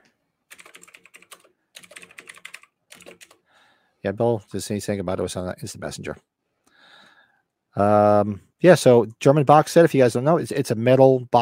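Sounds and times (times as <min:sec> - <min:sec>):
computer keyboard typing: 0:00.5 - 0:03.4
speech: 0:04.0 - 0:06.4, 0:07.8 - 0:11.4.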